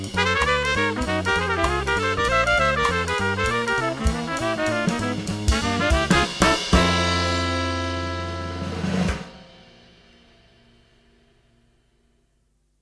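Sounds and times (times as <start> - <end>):
horn: 0.0 - 10.2.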